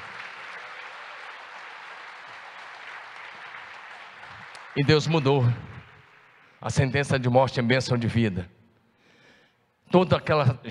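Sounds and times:
audience applause: 0:00.0 - 0:07.0
speech: 0:04.8 - 0:05.7, 0:06.6 - 0:08.6, 0:09.9 - 0:10.6.

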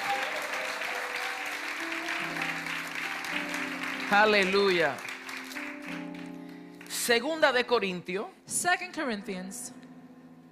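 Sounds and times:
audience applause and hand clapping: 0:00.0 - 0:06.9
speech: 0:04.1 - 0:05.1, 0:07.1 - 0:09.8.

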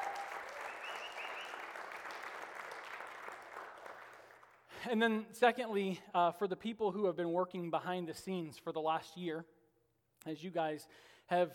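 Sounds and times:
church congregation applause: 0:00.0 - 0:04.8
speech: 0:04.8 - 0:09.6, 0:10.2 - 0:11.5.

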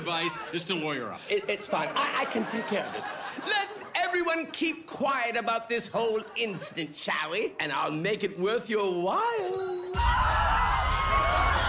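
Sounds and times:
laughter: 0:00.0 - 0:05.3, 0:05.9 - 0:07.0
speech: 0:00.1 - 0:10.8
crowd yelling: 0:09.9 - 0:11.6.

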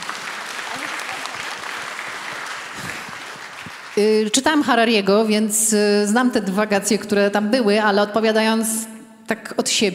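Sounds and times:
audience applause: 0:00.0 - 0:04.2
speech: 0:04.0 - 0:09.9.

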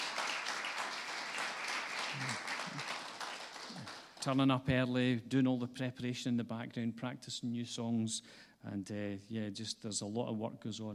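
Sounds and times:
crowd applauding: 0:00.0 - 0:04.3
low vocal sounds: 0:02.1 - 0:02.9
speech: 0:02.2 - 0:02.9, 0:04.2 - 0:10.9.

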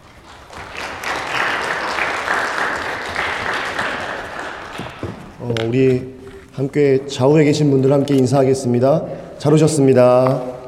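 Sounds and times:
audience applause welcoming the speaker: 0:00.0 - 0:05.4
speech: 0:05.5 - 0:10.6.

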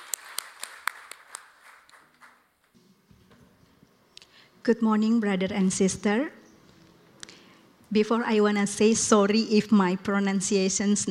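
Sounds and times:
audience applause: 0:00.0 - 0:02.6
speech: 0:04.6 - 0:06.4, 0:07.9 - 0:11.0.

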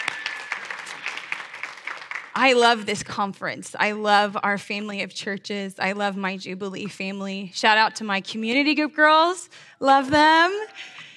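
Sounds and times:
audience clapping: 0:00.0 - 0:02.7
speech: 0:02.4 - 0:11.0.

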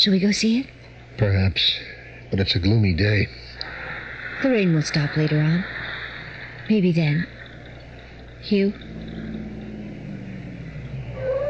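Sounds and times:
speech: 0:00.0 - 0:03.5, 0:04.4 - 0:05.8, 0:06.7 - 0:07.4, 0:08.4 - 0:08.9
car engines outside, radio drama sound effect for cars arriving: 0:07.3 - 0:11.4.

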